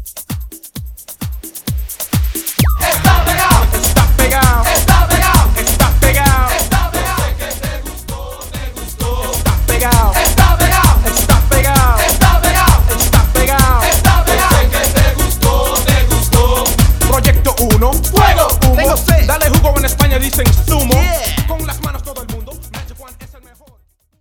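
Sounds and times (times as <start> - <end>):
music intro chorus: 1.0 - 23.3.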